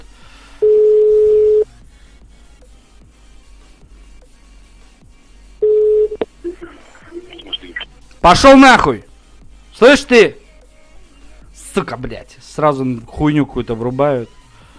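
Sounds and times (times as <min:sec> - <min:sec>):
telephone line beeps while dialing a number: 0:00.6 - 0:01.6, 0:05.6 - 0:06.2
speech: 0:08.2 - 0:09.1, 0:09.8 - 0:10.4, 0:11.8 - 0:14.4.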